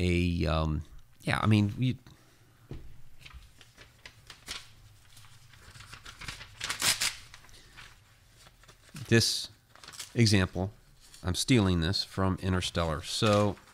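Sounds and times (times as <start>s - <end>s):
speech: 0.0s - 2.1s, 9.1s - 13.6s
sheet of paper rustling as someone handles it: 3.0s - 12.0s, 12.6s - 13.7s.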